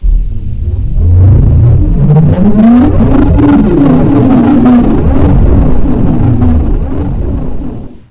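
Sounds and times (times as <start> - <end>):
dive boom: 0.0 - 8.0.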